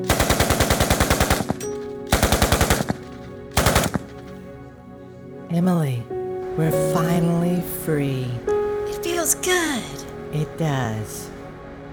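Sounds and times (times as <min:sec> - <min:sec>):
automatic gunfire: 0:00.0 - 0:04.3
speech: 0:05.5 - 0:08.5, 0:09.2 - 0:11.3.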